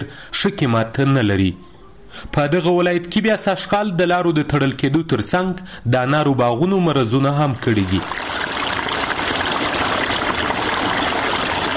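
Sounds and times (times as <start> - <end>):
speech: 0.4 - 8.3
irrigation water flowing through a pomegranate orchard in Sepidkhar near Tarinkot: 7.4 - 11.7.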